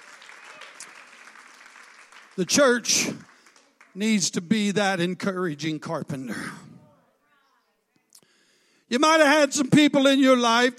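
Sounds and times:
audience clapping hands: 0.0s - 4.8s
speech: 2.4s - 3.3s, 4.0s - 6.6s, 8.9s - 10.7s.

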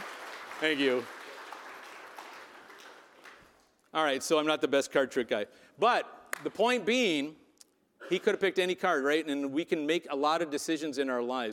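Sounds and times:
audience applause: 0.0s - 3.6s
speech: 0.6s - 1.2s, 3.9s - 7.4s, 8.1s - 11.5s.

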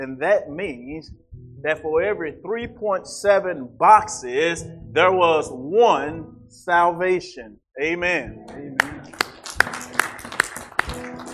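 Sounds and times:
speech: 0.0s - 8.9s
audience clapping: 8.8s - 11.3s.

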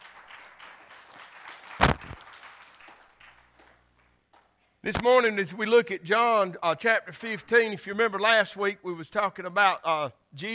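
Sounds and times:
audience clapping: 0.0s - 4.6s
speech: 4.8s - 10.5s.

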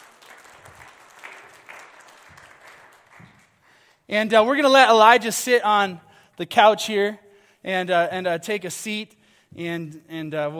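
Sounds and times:
audience applause: 0.0s - 3.8s
speech: 4.1s - 10.5s.

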